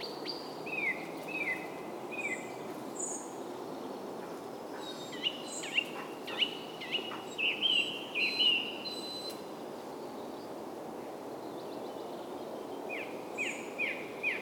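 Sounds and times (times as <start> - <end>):
birds: 0.0 - 14.3.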